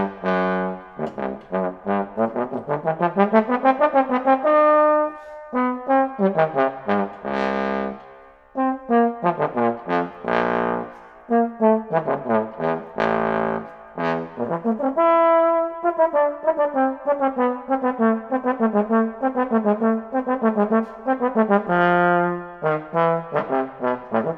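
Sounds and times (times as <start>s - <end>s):
bass trombone playing: 0.0s - 8.0s, 8.6s - 24.3s.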